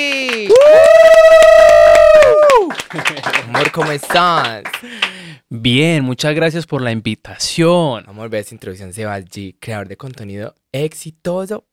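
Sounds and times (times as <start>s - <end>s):
audience applause and cheering: 0.0s - 5.3s
speech: 3.6s - 11.7s.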